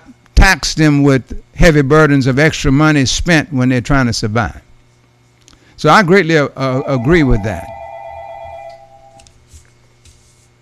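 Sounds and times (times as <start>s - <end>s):
speech: 0.4s - 4.6s, 5.8s - 7.7s
telephone ringing for an incoming call to a radio call-in show: 6.8s - 9.2s.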